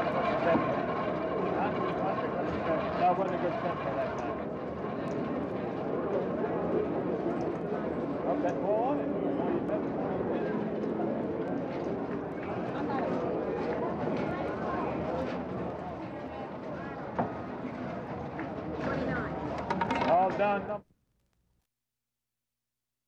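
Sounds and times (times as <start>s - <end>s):
crowd in background: 0.0s - 20.9s
roulette wheel in gambling: 18.8s - 20.6s.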